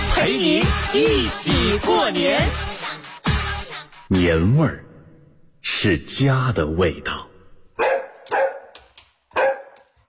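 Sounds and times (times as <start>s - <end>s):
speech: 0.2s - 2.9s, 4.1s - 4.9s, 5.7s - 7.9s
dog barking: 7.8s - 9.9s.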